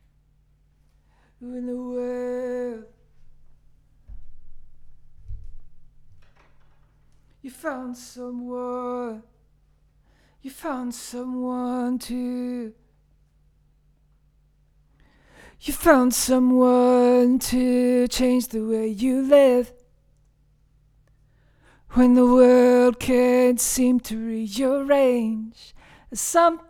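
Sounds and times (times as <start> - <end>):
vocals: 1.1 - 4.2, 6.6 - 13.2, 15.0 - 20.4, 21.5 - 26.6.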